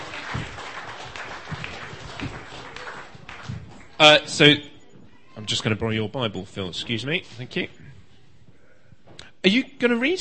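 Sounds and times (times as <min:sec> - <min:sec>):
audience applause: 0:00.0 - 0:03.9
speech: 0:04.0 - 0:04.7, 0:05.5 - 0:07.8, 0:09.4 - 0:10.1.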